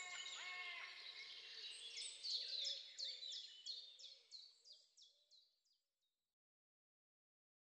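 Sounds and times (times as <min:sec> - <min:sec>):
birds singing: 0:00.0 - 0:05.3.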